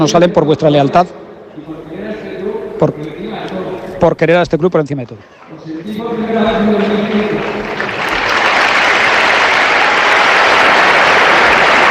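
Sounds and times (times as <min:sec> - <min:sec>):
speech: 0:00.0 - 0:01.9, 0:02.8 - 0:03.1, 0:04.0 - 0:07.6
large crowd of football fans applauding in stadium: 0:06.3 - 0:11.8.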